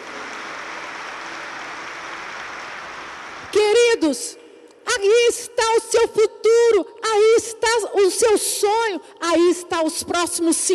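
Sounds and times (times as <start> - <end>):
audience applause: 0.0 - 3.6
speech: 4.0 - 4.4, 5.0 - 10.7.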